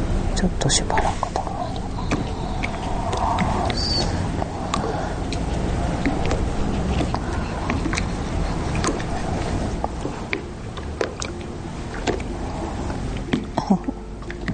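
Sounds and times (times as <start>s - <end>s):
rumbling noise: 0.0s - 14.5s
speech: 0.4s - 1.4s
pug snorting and grunting: 1.0s - 10.4s.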